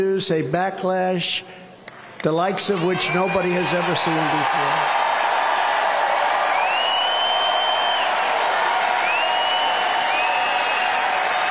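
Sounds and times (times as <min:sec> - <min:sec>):
speech: 0:00.0 - 0:01.6, 0:02.2 - 0:05.0
small rally crowd cheering: 0:02.5 - 0:11.4.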